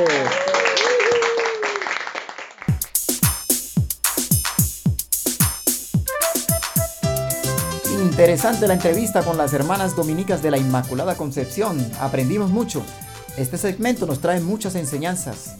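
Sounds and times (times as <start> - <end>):
crowd applause: 0.0 - 2.7
punchy music jingle with heavy rhythmic drum hits: 2.7 - 15.5
speech: 8.2 - 15.5.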